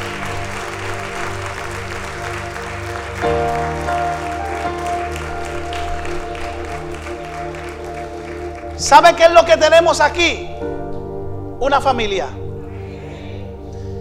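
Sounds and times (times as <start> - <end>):
audience applause: 0.0 - 9.6
sustained keyboard chords: 0.0 - 13.9
speech: 8.9 - 10.6, 11.6 - 12.4.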